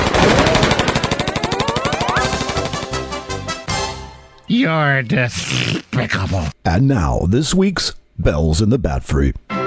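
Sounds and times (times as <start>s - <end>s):
rapid automatic gunfire: 0.0s - 3.2s
speech: 4.6s - 9.5s.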